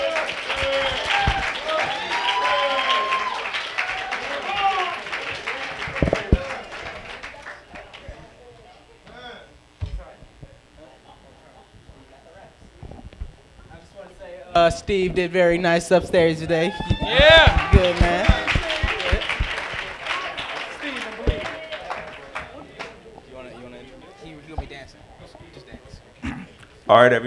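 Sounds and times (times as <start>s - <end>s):
audience round of applause: 0.0s - 8.4s, 16.0s - 25.8s
speech: 14.7s - 18.3s, 26.9s - 27.2s.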